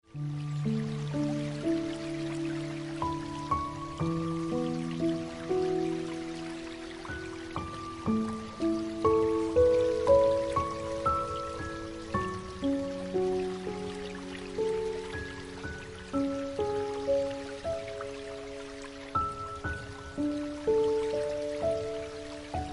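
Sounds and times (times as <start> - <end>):
piano music: 0.0 - 22.7.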